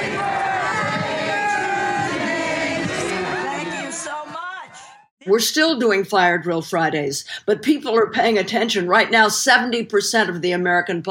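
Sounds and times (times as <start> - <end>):
demonstrators singing during an arrest: 0.0 - 4.8
speech: 5.3 - 11.1.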